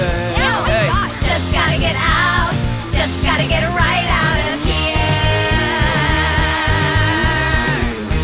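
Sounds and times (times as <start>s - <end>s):
characters singing: 0.0s - 8.1s.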